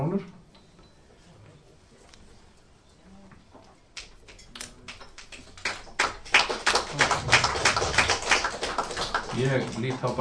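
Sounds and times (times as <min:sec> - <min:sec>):
small group clapping at a members' meeting approving a motion: 0:03.9 - 0:10.1
speech: 0:09.5 - 0:10.1.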